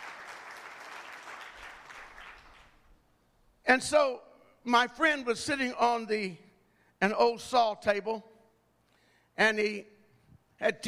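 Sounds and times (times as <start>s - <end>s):
audience hand clapping: 0.0s - 2.9s
speech: 3.7s - 6.4s, 7.0s - 8.3s, 9.4s - 9.9s, 10.6s - 10.8s.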